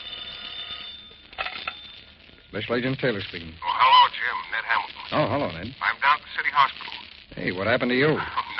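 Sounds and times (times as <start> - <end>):
telephone ringing: 0.0 - 4.7
speech: 2.5 - 8.4.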